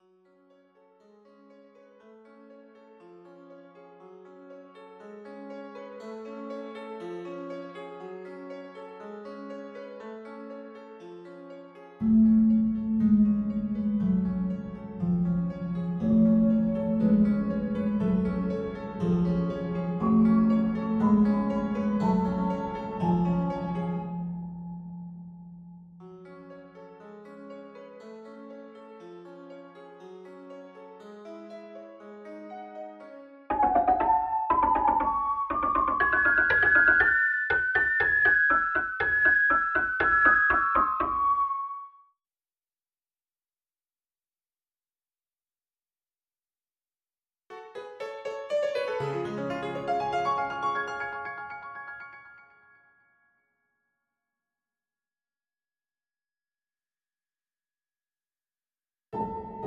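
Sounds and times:
piano march with effects: 12.1s - 24.8s, 31.4s - 41.8s, 47.5s - 52.8s, 59.2s - 59.6s.

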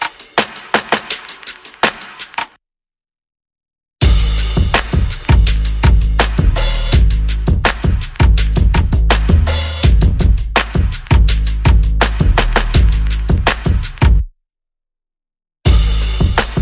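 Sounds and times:
percussion: 0.0s - 2.6s, 4.0s - 14.3s, 15.7s - 16.5s
bass: 4.0s - 14.3s, 15.7s - 16.5s.

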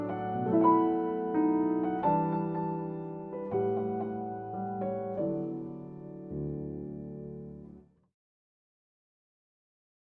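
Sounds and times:
solo piano: 0.0s - 8.0s.

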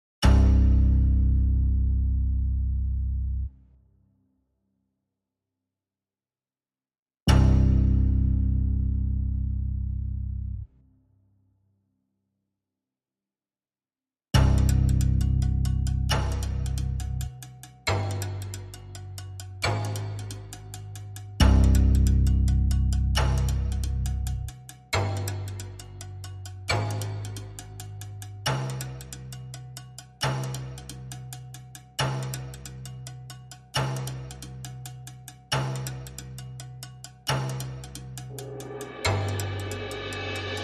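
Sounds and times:
bass: 0.2s - 4.0s, 7.3s - 11.0s, 14.4s - 40.6s
drums: 14.4s - 25.9s, 33.7s - 40.6s.

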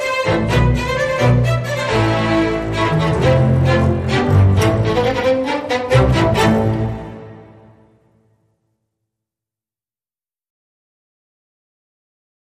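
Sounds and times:
solo strings: 0.0s - 8.2s.

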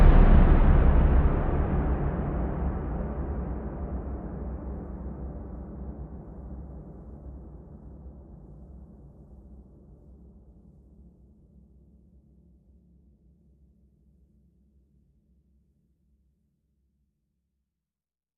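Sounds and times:
percussion pulses: 0.0s - 3.2s.

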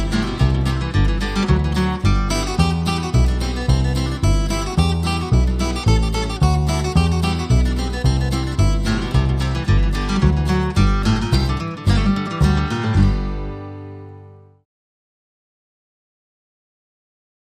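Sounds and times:
flat-picked fiddle tune: 0.0s - 13.4s.

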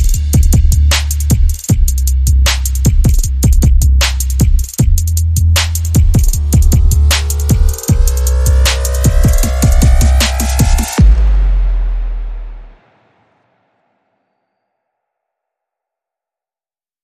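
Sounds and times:
drum and bass music: 0.0s - 13.1s.

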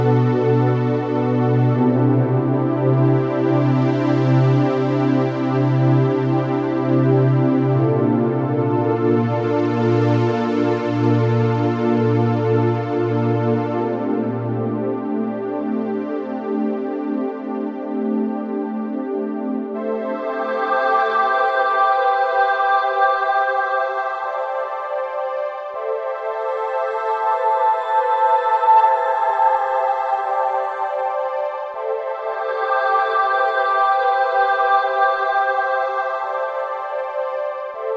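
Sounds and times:
synth pads: 0.0s - 37.9s.

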